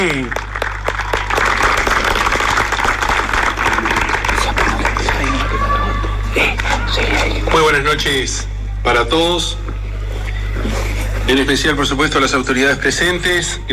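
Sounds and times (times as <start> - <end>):
speech: 0.0 - 0.4, 7.6 - 9.7, 11.3 - 13.7
crowd applause: 0.0 - 7.7
low electrical hum: 0.0 - 13.7.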